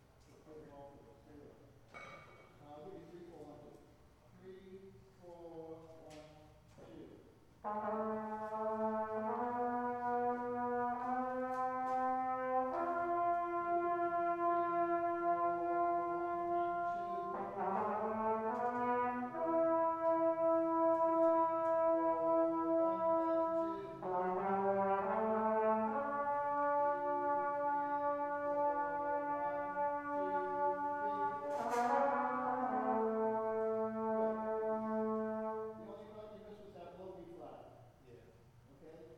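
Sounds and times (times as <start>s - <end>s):
brass instruments: 7.5s - 36.7s.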